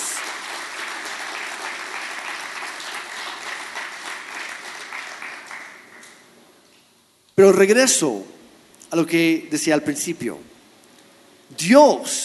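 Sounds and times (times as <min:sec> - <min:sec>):
audience applause: 0:00.0 - 0:06.2
speech: 0:07.4 - 0:10.6, 0:11.5 - 0:12.2.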